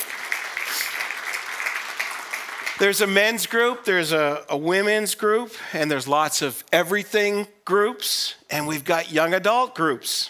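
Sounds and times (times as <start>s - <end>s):
audience applause: 0.0s - 3.0s
speech: 2.8s - 10.2s.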